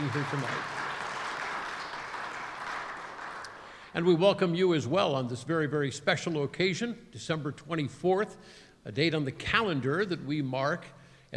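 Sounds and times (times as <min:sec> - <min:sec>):
crowd applause: 0:00.0 - 0:03.9
speech: 0:00.1 - 0:00.8, 0:03.9 - 0:11.3.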